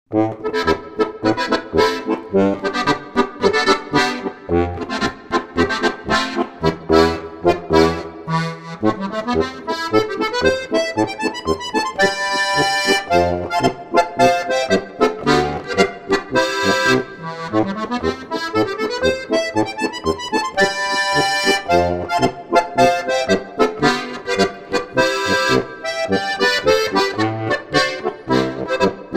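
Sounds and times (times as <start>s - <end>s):
polka music: 0.1s - 29.1s.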